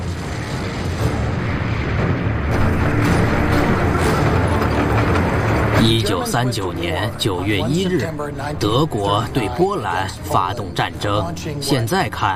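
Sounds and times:
heavy artillery bombardment from a battleship's guns: 0.0s - 7.2s
speech: 5.8s - 12.3s.

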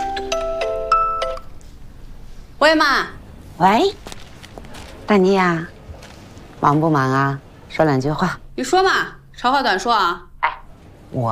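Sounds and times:
phone ringtone melody for an incoming call: 0.0s - 1.5s
speech: 2.6s - 4.0s, 5.1s - 5.7s, 6.6s - 10.3s, 11.1s - 11.3s.

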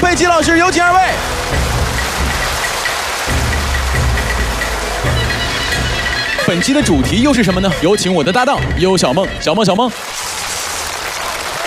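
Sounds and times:
audience applause welcoming guests: 0.0s - 6.5s, 9.9s - 11.6s
speech: 0.2s - 1.8s, 6.5s - 10.3s.

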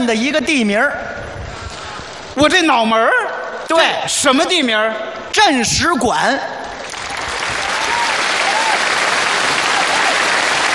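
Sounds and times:
speech: 0.1s - 1.2s, 2.4s - 6.6s
crowd applause: 6.8s - 10.7s.

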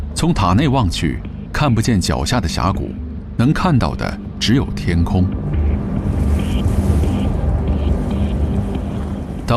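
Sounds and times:
speech: 0.2s - 5.4s
howling wind: 4.3s - 9.5s.

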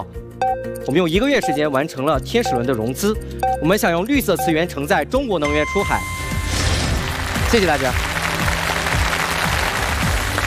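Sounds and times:
speech: 0.0s - 6.2s, 7.5s - 8.1s
audience applause: 6.9s - 10.4s.

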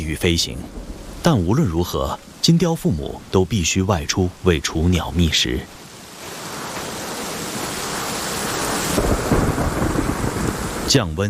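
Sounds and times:
low rumbling thunder: 0.0s - 4.4s, 7.8s - 11.0s
steady heavy rain: 0.0s - 11.2s
speech: 0.1s - 5.8s, 10.9s - 11.2s.

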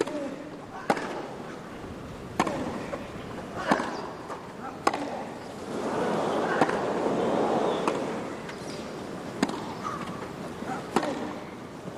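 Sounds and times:
tennis ball strikes in a Wimbledon rally including a topspin forehand: 0.0s - 1.4s, 2.3s - 3.0s, 3.6s - 5.4s, 6.4s - 11.6s.

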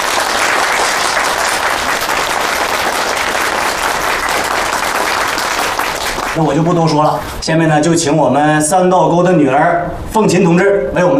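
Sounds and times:
warm audience applause: 0.0s - 6.6s
speech: 6.4s - 11.1s.

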